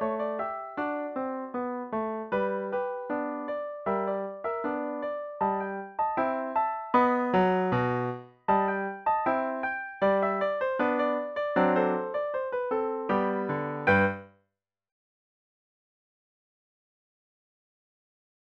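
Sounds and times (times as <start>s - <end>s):
piano: 0.0s - 14.4s.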